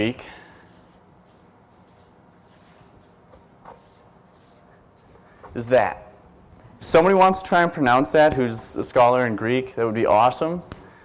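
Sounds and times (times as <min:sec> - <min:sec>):
speech: 0:00.0 - 0:00.4, 0:05.6 - 0:06.0, 0:06.8 - 0:10.8
writing on a board: 0:00.5 - 0:05.2.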